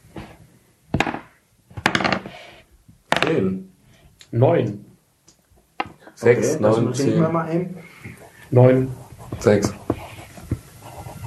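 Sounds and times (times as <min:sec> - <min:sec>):
ten-sided dice being rolled: 0:01.0 - 0:02.4, 0:03.1 - 0:03.3
speech: 0:03.3 - 0:03.7, 0:04.3 - 0:04.9, 0:06.2 - 0:07.9, 0:08.5 - 0:09.8.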